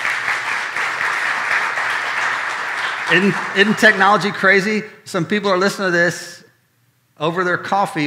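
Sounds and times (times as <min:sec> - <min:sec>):
audience applauding: 0:00.0 - 0:04.4
speech: 0:03.1 - 0:06.4, 0:07.2 - 0:08.0.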